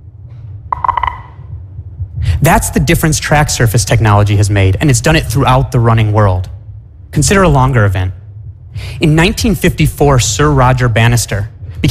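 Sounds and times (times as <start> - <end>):
low steady rumble: 0.0 - 11.9
electronic timing beeps: 0.7 - 1.6
speech: 2.4 - 6.6, 7.2 - 8.2, 8.8 - 11.9.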